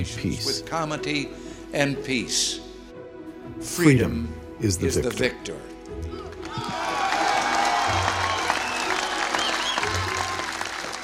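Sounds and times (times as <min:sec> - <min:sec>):
speech: 0:00.0 - 0:02.6, 0:03.5 - 0:06.1
stormy crowd applause in Berlin: 0:06.1 - 0:11.0.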